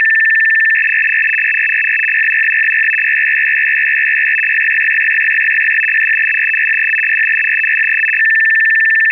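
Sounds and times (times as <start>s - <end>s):
Baudot data tones with 1.5 stop bits: 0.0s - 9.0s.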